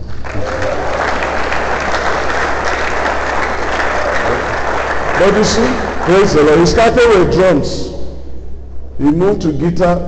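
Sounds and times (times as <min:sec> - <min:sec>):
audience applause: 0:00.0 - 0:06.5
speech: 0:05.2 - 0:07.9, 0:09.0 - 0:10.0.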